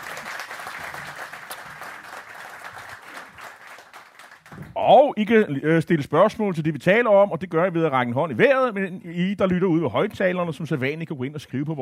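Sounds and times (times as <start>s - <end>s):
live studio audience applauding: 0.0s - 4.8s
speech: 4.8s - 11.8s.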